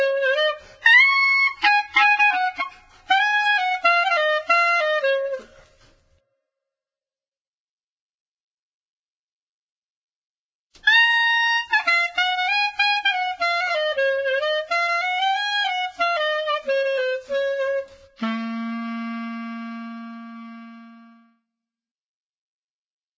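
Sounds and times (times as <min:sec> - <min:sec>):
flute duet: 0:00.0 - 0:05.8, 0:10.8 - 0:21.4.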